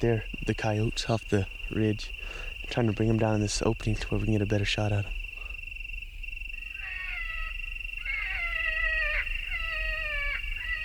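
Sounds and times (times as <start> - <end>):
speech: 0.0 - 5.2
recorded wounded rabbit distress call: 6.8 - 10.8.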